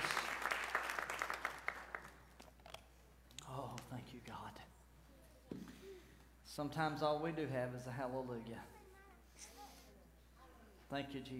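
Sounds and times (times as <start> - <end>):
audience clapping hands: 0.0 - 2.4
speech: 4.0 - 4.8, 5.5 - 8.8, 10.9 - 11.3.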